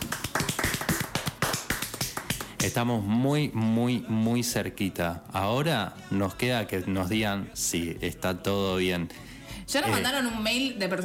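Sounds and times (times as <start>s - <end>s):
one person clapping hands: 0.0s - 2.9s
speech: 2.6s - 11.0s.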